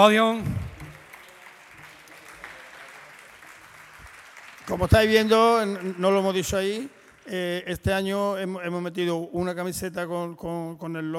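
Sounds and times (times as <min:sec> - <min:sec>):
speech: 0:00.0 - 0:00.6, 0:04.7 - 0:11.1
crowd applause: 0:00.0 - 0:07.6.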